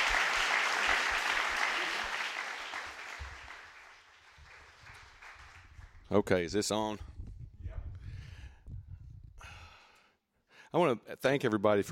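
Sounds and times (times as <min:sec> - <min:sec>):
audience applause: 0:00.0 - 0:06.0
speech: 0:06.1 - 0:07.1, 0:10.8 - 0:11.8.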